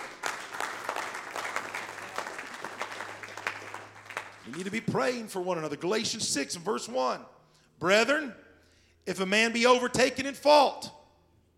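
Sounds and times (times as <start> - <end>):
audience clapping hands: 0.0 - 5.2
speech: 4.5 - 8.4, 9.0 - 11.0.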